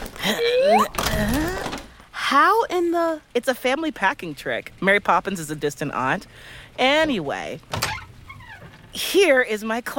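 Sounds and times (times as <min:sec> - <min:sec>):
closet door being pulled out, creaking: 0:00.0 - 0:02.0, 0:07.0 - 0:09.0
speech: 0:00.3 - 0:01.4, 0:02.3 - 0:08.0, 0:09.0 - 0:09.9.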